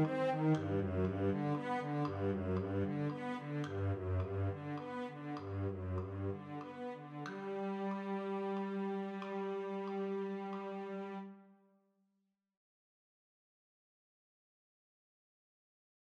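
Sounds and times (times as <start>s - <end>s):
cello: 0.0s - 11.6s.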